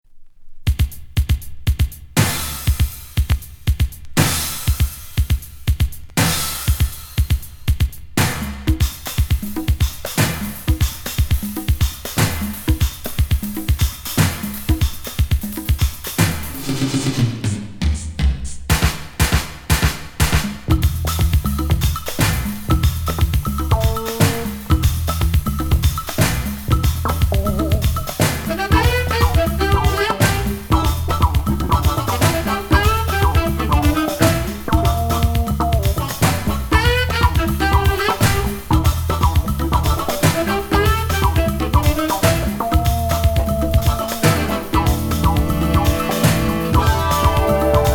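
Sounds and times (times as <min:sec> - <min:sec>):
Afrobeat music: 0:00.7 - 0:47.9.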